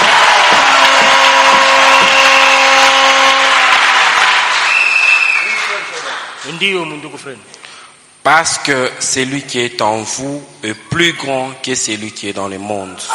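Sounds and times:
congregation applauding at a religious service: 0:00.0 - 0:06.8
speech: 0:06.6 - 0:07.6, 0:08.2 - 0:13.1.

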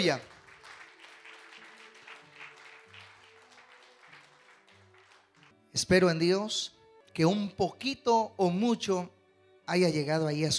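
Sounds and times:
speech: 0:00.0 - 0:00.3, 0:05.8 - 0:10.5
congregation clapping during an evangelical church service: 0:00.0 - 0:05.6.

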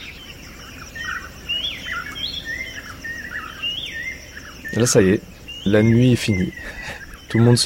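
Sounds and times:
savanna birds' dawn chorus: 0:00.0 - 0:07.6
speech: 0:04.7 - 0:07.6.

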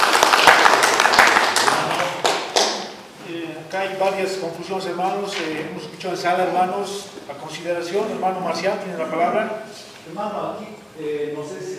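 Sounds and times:
crowd at a District 9 statutory congress in Achocalla applauding: 0:00.0 - 0:03.1
speech: 0:03.7 - 0:11.7.

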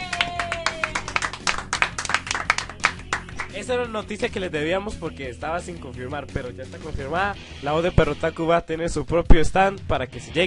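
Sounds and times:
small group clapping: 0:00.0 - 0:03.7
speech: 0:03.6 - 0:10.4.

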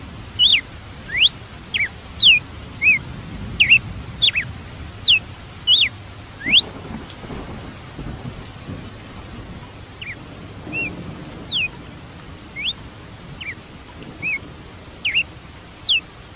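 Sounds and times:
red-cowled cardinal whistling: 0:00.4 - 0:03.0, 0:03.6 - 0:06.8, 0:10.0 - 0:10.9, 0:11.5 - 0:11.7, 0:12.6 - 0:12.8, 0:13.4 - 0:13.6, 0:14.2 - 0:14.4, 0:15.0 - 0:16.0.

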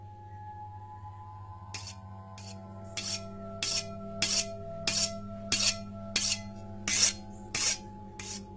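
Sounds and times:
continuous low hum: 0:00.0 - 0:08.5
knife sharpened on a whetstone: 0:01.8 - 0:08.5.

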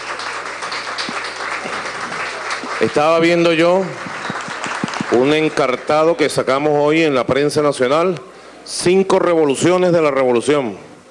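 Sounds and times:
group clapping for parents and representatives: 0:00.0 - 0:06.8
speech: 0:02.8 - 0:04.0, 0:05.1 - 0:10.9.

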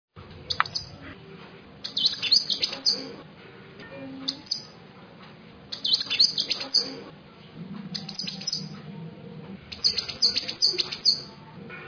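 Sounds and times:
songbird song in bursts of high chirps and sharp notes: 0:00.3 - 0:03.2, 0:03.8 - 0:05.0, 0:05.7 - 0:11.8.

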